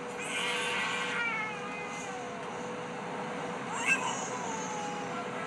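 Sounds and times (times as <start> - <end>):
baby screaming: 0.1 - 2.4, 3.7 - 5.4.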